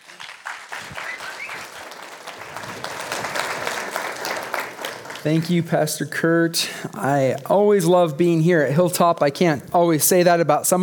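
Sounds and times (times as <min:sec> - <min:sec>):
church congregation applause welcoming a guest speaker: 0:00.0 - 0:06.2
speech: 0:05.2 - 0:10.8.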